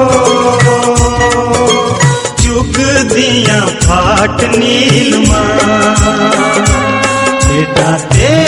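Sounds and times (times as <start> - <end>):
Himachali ringtone melody: 0.2 - 8.4.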